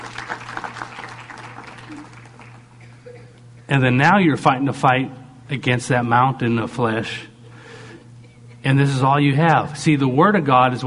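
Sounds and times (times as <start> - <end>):
audience applause: 0.0 - 2.7
low constant hum: 0.0 - 10.8
speech: 3.7 - 7.3, 8.6 - 10.8.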